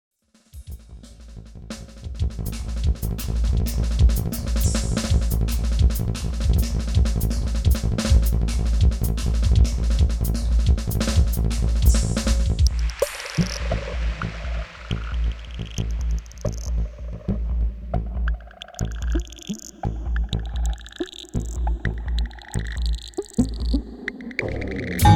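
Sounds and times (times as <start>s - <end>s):
drums in nine: 0.4s - 24.0s.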